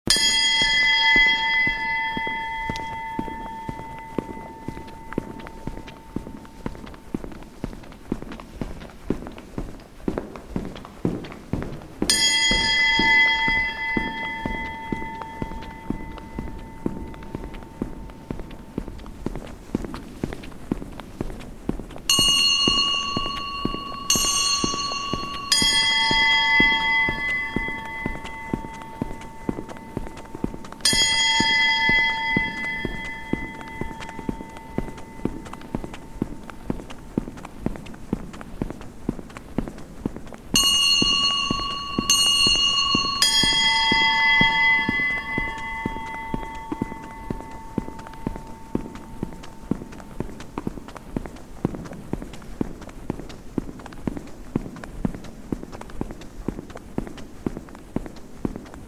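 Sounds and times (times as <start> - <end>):
bell: 0.1 - 56.4
footsteps: 0.1 - 58.8.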